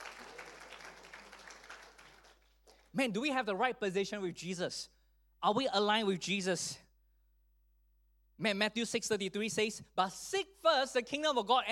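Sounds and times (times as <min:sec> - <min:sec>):
congregation applauding during a sermon: 0:00.0 - 0:02.8
speech: 0:03.0 - 0:06.8, 0:08.4 - 0:11.7.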